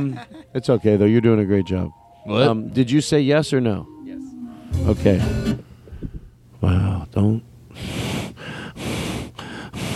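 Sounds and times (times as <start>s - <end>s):
speech: 0.0s - 3.9s, 4.7s - 5.6s, 6.6s - 7.9s
heavy breathing: 7.7s - 9.9s.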